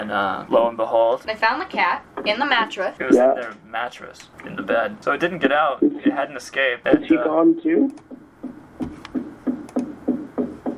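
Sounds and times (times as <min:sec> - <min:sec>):
speech: 0:00.0 - 0:08.1
hammer knocking somewhere in the house: 0:08.1 - 0:10.7.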